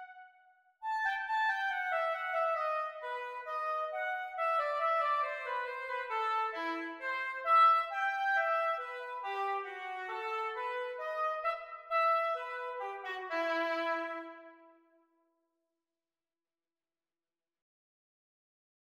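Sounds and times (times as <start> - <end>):
oboe duet practice: 0.9 - 14.5.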